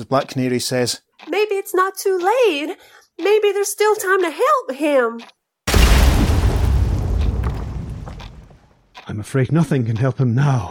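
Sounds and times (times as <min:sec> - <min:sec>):
speech: 0:00.0 - 0:05.4, 0:09.1 - 0:10.6
explosion blast with heavy low rumble and roar: 0:05.7 - 0:08.7.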